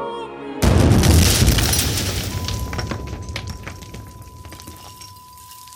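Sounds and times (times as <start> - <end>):
bomb exploding inside an opera house: 0.6 - 5.1
debris clattering: 0.6 - 5.7.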